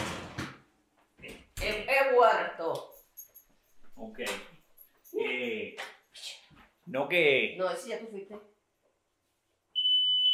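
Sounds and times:
speech: 1.7 - 2.9, 4.0 - 4.5, 6.9 - 8.5
smoke alarm beeping: 9.8 - 10.3.

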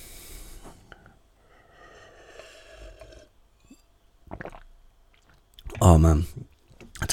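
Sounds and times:
sipping a drink: 2.4 - 5.8
speech: 5.9 - 6.4.

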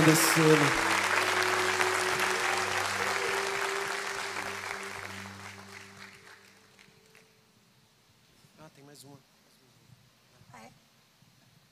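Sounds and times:
speech: 0.0 - 0.9
audience applause: 0.0 - 7.3.

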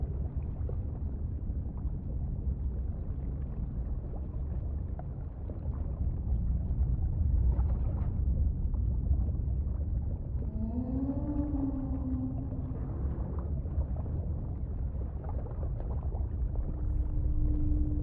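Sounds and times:
steady low rumble of underwater noise: 0.0 - 18.0
whale song: 10.4 - 13.4, 16.6 - 18.0.

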